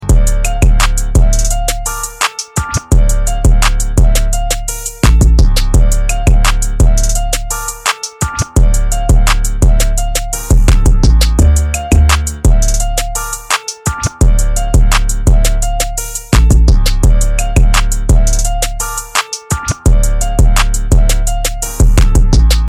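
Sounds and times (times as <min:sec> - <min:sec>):
instrumental ringtone: 0:00.0 - 0:22.4.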